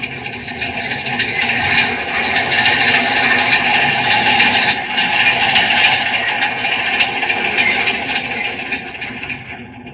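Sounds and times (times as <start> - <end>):
underground train rounding a curve in tunnel: 0.0 - 9.9.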